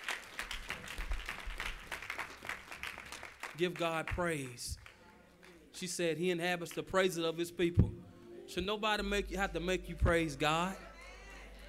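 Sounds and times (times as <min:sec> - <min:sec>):
audience applause: 0:00.0 - 0:05.0
speech: 0:03.6 - 0:04.8, 0:05.8 - 0:07.9, 0:08.5 - 0:10.9.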